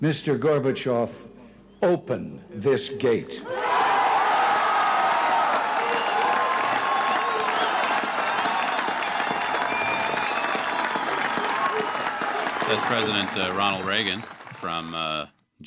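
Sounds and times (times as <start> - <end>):
speech: 0.0 - 3.8, 12.7 - 15.6
large outdoor crowd applause at speech: 3.5 - 15.2.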